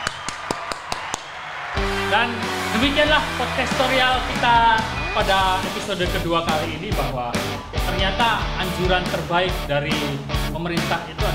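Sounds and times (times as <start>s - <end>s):
hand clapping applause: 0.0s - 5.9s
speech: 2.1s - 11.3s.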